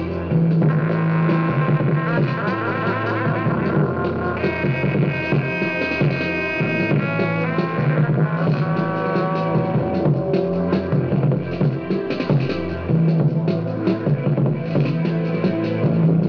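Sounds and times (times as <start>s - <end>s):
drum kit: 0.0s - 16.2s
piano: 0.0s - 16.2s.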